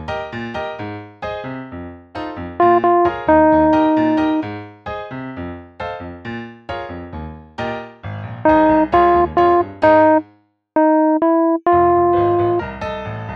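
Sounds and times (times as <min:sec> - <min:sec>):
vocal plunk: 0:02.6 - 0:04.4, 0:08.5 - 0:10.2, 0:10.8 - 0:12.6.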